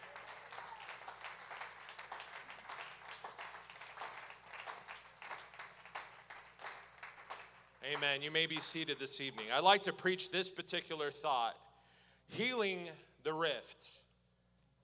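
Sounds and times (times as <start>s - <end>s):
audience hand clapping: 0.0s - 9.6s
speech: 7.9s - 11.6s, 12.3s - 14.0s.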